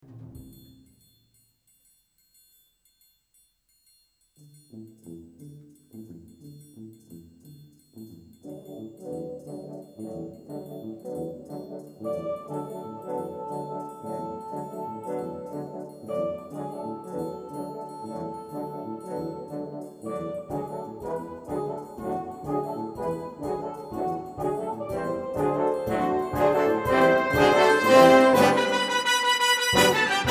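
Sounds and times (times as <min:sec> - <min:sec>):
brass instruments: 0:08.5 - 0:30.3.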